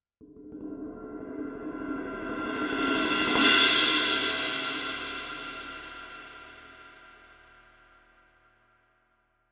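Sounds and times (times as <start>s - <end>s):
K Constantinople suspended cymbal: 0.8s - 8.6s.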